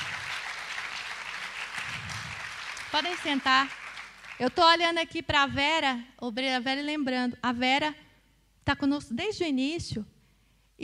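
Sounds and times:
audience applauding: 0:00.0 - 0:04.6
speech: 0:02.9 - 0:03.8, 0:04.4 - 0:08.0, 0:08.7 - 0:10.1.

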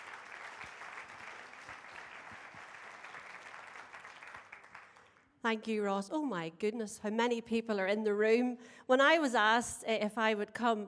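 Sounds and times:
audience applause: 0:00.0 - 0:05.1
speech: 0:05.4 - 0:10.8.

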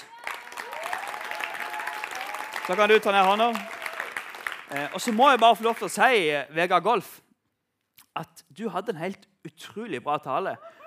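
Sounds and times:
audience applause: 0:00.0 - 0:06.2
speech: 0:02.7 - 0:03.8, 0:04.7 - 0:07.2, 0:08.2 - 0:10.7.

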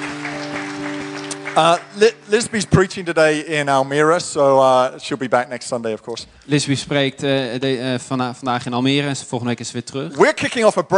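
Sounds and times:
audience applause: 0:00.0 - 0:03.4
speech: 0:01.6 - 0:10.9.

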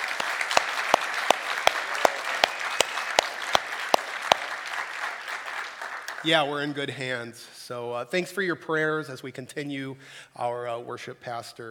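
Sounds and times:
audience round of applause: 0:00.0 - 0:06.8
speech: 0:06.2 - 0:11.6.

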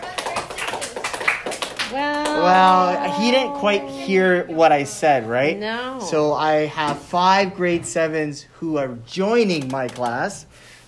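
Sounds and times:
students clapping for themselves: 0:00.0 - 0:02.8
speech: 0:01.9 - 0:10.7.

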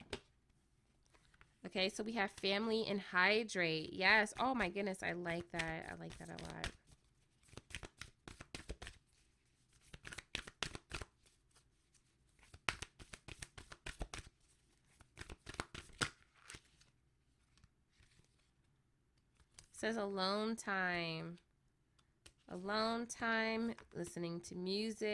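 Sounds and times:
deck of cards shuffling: 0:00.0 - 0:02.6, 0:04.0 - 0:19.8, 0:22.0 - 0:22.8
speech: 0:01.7 - 0:06.8, 0:19.8 - 0:21.5, 0:22.5 - 0:25.1.

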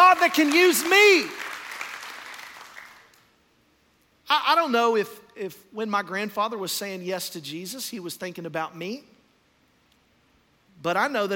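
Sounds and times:
audience clapping hands: 0:00.0 - 0:03.3
speech: 0:00.2 - 0:01.4, 0:04.3 - 0:09.2, 0:10.8 - 0:11.3.

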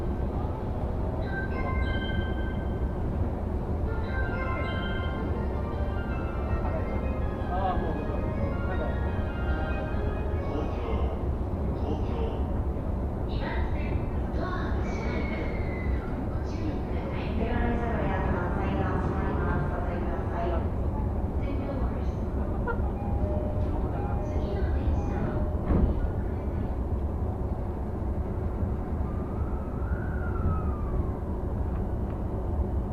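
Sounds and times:
Tokyo commuter train carriage rumbling and rattling: 0:00.0 - 0:32.9
passengers' voices: 0:00.0 - 0:32.9
brief train announcements: 0:00.6 - 0:25.7
short squeals: 0:15.2 - 0:16.2.

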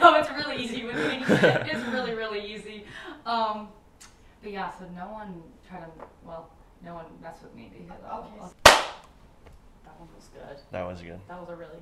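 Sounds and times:
laughter: 0:00.4 - 0:02.2
speech: 0:01.3 - 0:01.9, 0:04.4 - 0:09.0, 0:09.9 - 0:11.7
single hand clap: 0:08.6 - 0:09.1.

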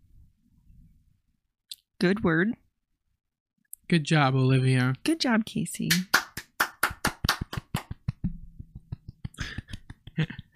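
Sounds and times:
speech: 0:02.0 - 0:02.6, 0:03.9 - 0:06.1, 0:10.2 - 0:10.4
golf clap: 0:05.9 - 0:08.2.

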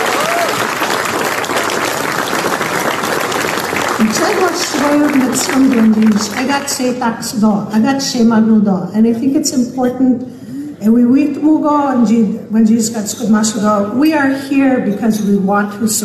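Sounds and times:
round of applause: 0:00.0 - 0:06.7
speech: 0:04.0 - 0:16.0.

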